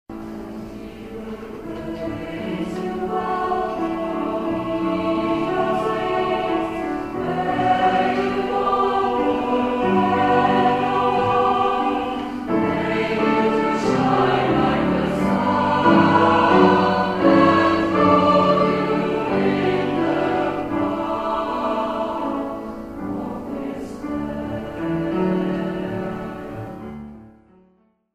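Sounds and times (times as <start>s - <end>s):
teachers' choir singing: 0.1s - 27.2s.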